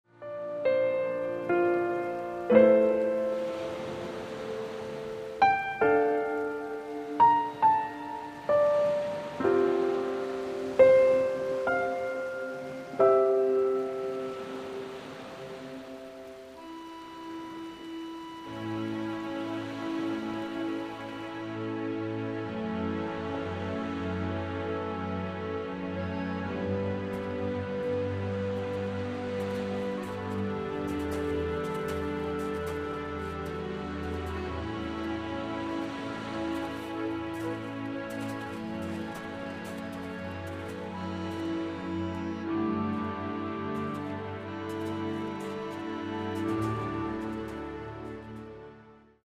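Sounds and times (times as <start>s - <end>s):
North Sea relaxation soothing piano: 0.1s - 49.2s.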